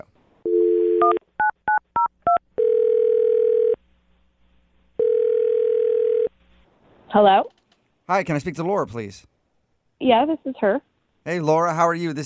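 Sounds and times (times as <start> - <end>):
telephone dialing tones: 0.5 - 3.8, 5.0 - 6.3
speech: 7.1 - 9.3, 10.0 - 12.2.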